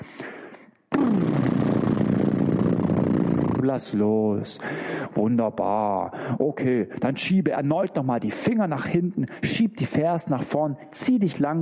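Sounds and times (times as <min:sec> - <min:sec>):
short breathy sound: 0:00.0 - 0:00.8, 0:04.6 - 0:05.2
lips blowing fluttering trill like a snorting horse: 0:00.9 - 0:03.6
speech: 0:03.6 - 0:11.6.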